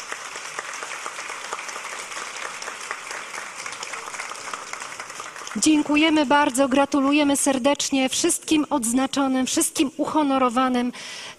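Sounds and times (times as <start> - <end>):
audience applause: 0.0 - 6.4
speech: 5.6 - 11.3.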